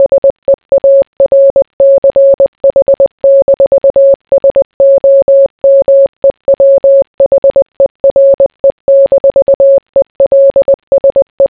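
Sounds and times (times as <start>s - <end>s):
morse code beeps: 0.0s - 11.4s.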